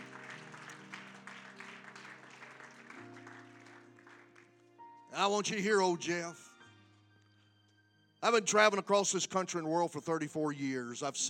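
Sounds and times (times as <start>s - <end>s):
audience hand clapping: 0.0s - 4.7s
speech: 5.2s - 6.4s, 8.2s - 11.2s.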